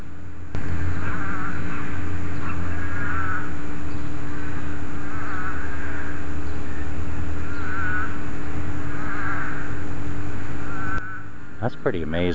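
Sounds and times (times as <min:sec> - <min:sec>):
desert toad song: 0:00.0 - 0:12.3
speech: 0:11.8 - 0:12.3.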